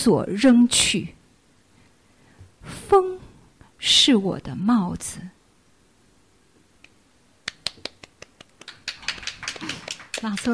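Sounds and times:
speech: 0:00.0 - 0:01.2, 0:02.6 - 0:03.1, 0:03.8 - 0:05.4, 0:09.6 - 0:10.5
audience applause: 0:08.6 - 0:10.5.

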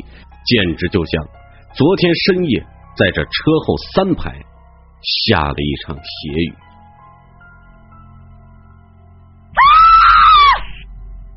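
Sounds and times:
speech: 0:00.5 - 0:06.6
woman screaming hysterically: 0:09.6 - 0:10.8.

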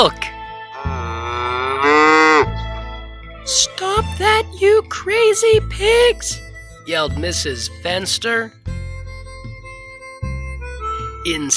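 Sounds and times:
speech: 0:00.0 - 0:00.3, 0:04.2 - 0:08.6, 0:11.2 - 0:11.5
cow mooing: 0:00.8 - 0:02.6.

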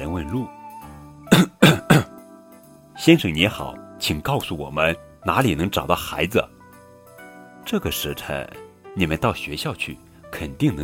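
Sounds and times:
speech: 0:00.0 - 0:00.6, 0:03.0 - 0:06.6, 0:07.7 - 0:10.8
person clearing throat: 0:01.3 - 0:02.2.

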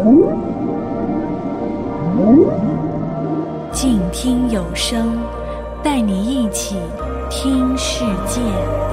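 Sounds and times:
low underwater rumble: 0:00.0 - 0:03.7
whale calls: 0:00.0 - 0:03.7
speech: 0:04.2 - 0:08.8.

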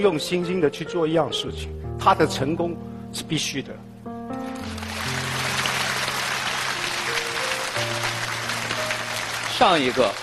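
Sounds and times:
speech: 0:00.0 - 0:03.9, 0:09.6 - 0:10.2
audience applause: 0:04.5 - 0:10.2.

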